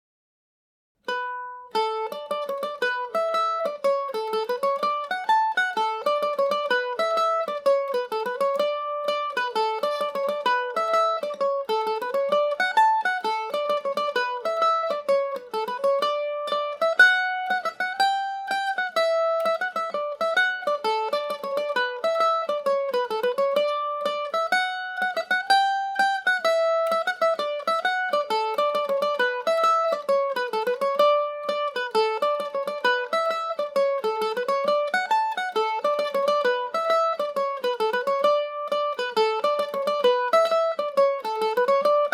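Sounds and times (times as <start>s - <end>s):
mandolin playing a slide in D major: 1.0s - 42.1s.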